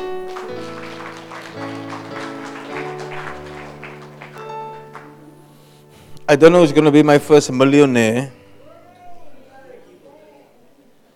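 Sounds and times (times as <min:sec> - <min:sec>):
audience clapping: 0:00.0 - 0:05.6
speech: 0:06.3 - 0:08.4.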